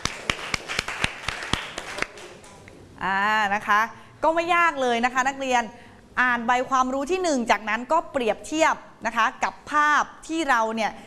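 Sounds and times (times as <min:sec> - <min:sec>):
class of students clapping: 0:00.0 - 0:02.6
speech: 0:03.0 - 0:11.0.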